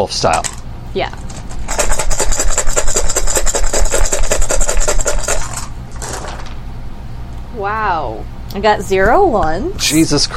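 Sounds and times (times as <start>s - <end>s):
speech: 0.0s - 1.3s, 7.6s - 10.3s
dice rattling and clattering: 1.5s - 6.6s.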